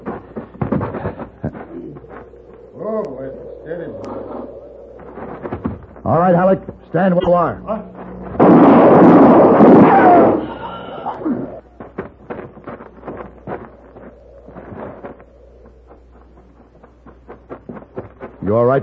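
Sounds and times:
speech: 0:02.9 - 0:04.5, 0:06.1 - 0:07.9, 0:18.5 - 0:18.8
gunshot: 0:08.4 - 0:10.7.

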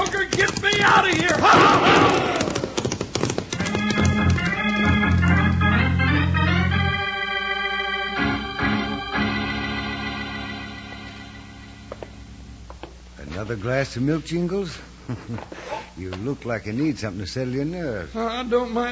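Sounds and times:
horses galloping hoofbeats: 0:00.0 - 0:06.0
sustained musical tones: 0:03.7 - 0:12.6
speech: 0:13.5 - 0:18.9.

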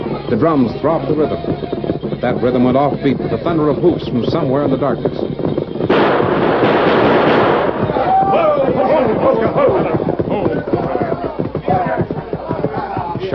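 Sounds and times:
jumble of shouting voices and cries: 0:00.0 - 0:13.3
speech: 0:00.3 - 0:05.5
gunfire: 0:05.9 - 0:08.1.

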